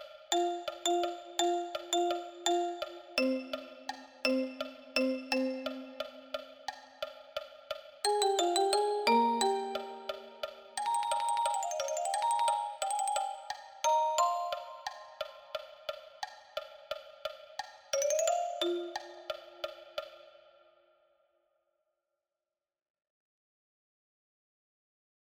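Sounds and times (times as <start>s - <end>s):
marimba: 0.3s - 6.7s, 8.1s - 15.7s, 17.9s - 19.9s.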